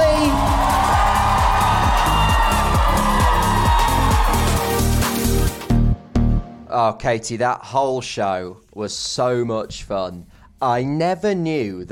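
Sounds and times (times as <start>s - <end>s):
round of applause: 0.0s - 5.4s
speech: 6.9s - 11.9s.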